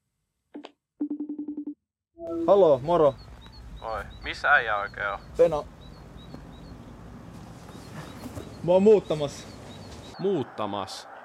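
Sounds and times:
telephone electronic beeps while dialing: 0:02.2 - 0:06.8
speech: 0:02.3 - 0:05.7, 0:08.6 - 0:09.6, 0:10.2 - 0:11.1.

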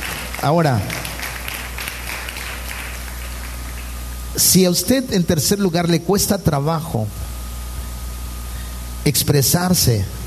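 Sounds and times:
audience applause: 0:00.0 - 0:04.0
speech: 0:00.4 - 0:01.0, 0:04.4 - 0:07.2, 0:09.0 - 0:10.2.

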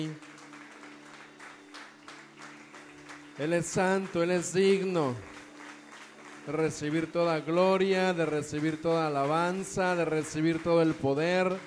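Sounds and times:
speech: 0:00.0 - 0:00.3, 0:03.4 - 0:05.3, 0:06.4 - 0:11.6
audience applause: 0:00.0 - 0:11.6.

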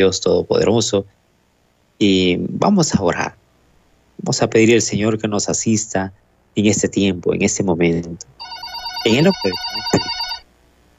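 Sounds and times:
speech: 0:00.0 - 0:01.2, 0:02.0 - 0:03.4, 0:04.2 - 0:10.2
telephone ringing with incoming call to a radio station: 0:08.4 - 0:10.5.

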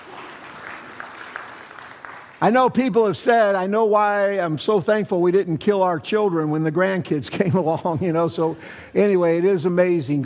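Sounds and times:
audience clapping: 0:00.0 - 0:03.6
speech: 0:02.4 - 0:10.2.

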